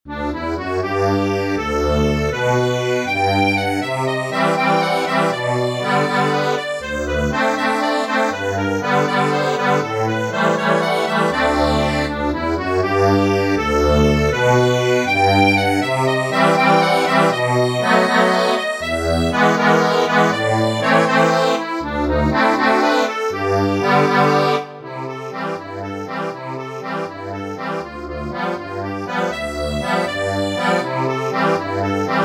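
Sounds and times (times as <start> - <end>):
accordion: 0.1 - 32.2.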